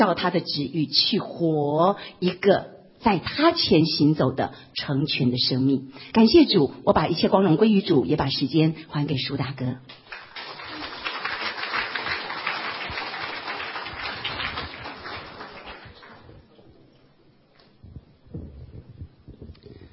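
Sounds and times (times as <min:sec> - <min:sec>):
speech: 0:00.0 - 0:10.0
audience applauding after testimonies: 0:10.0 - 0:16.5.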